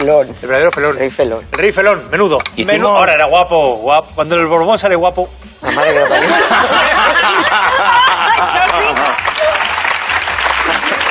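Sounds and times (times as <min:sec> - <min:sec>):
speech: 0:00.0 - 0:07.8
laughter: 0:05.6 - 0:09.3, 0:10.6 - 0:11.0
studio audience applause: 0:07.1 - 0:11.0.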